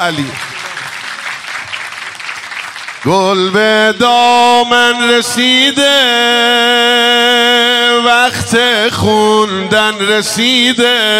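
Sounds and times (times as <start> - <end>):
speech: 0.0 - 0.5, 3.0 - 11.1
group hand clapping along with a festive religious song: 0.0 - 4.0
festive religious song: 0.0 - 11.1.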